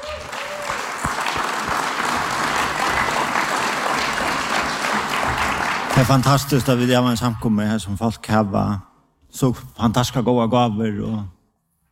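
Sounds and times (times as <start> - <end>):
audience applause: 0.0 - 6.8
speech: 6.0 - 11.4.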